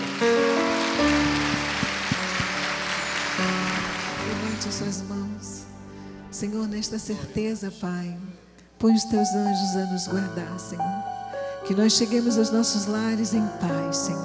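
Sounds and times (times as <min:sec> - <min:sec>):
crowd audience applauding: 0:00.0 - 0:05.1
speech: 0:06.4 - 0:11.1, 0:11.7 - 0:14.2.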